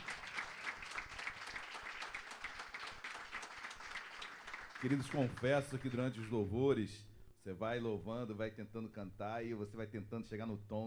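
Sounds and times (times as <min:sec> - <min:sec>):
audience applauding loudly: 0:00.0 - 0:06.2
speech: 0:04.8 - 0:10.8.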